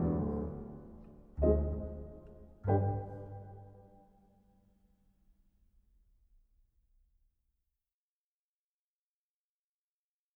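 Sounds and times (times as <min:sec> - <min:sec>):
waltz music: 0:00.0 - 0:04.2.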